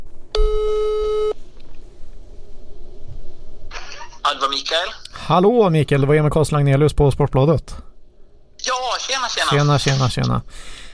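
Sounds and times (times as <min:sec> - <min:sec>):
ringback tone: 0:00.4 - 0:01.4
speech: 0:04.3 - 0:07.9, 0:09.4 - 0:10.8.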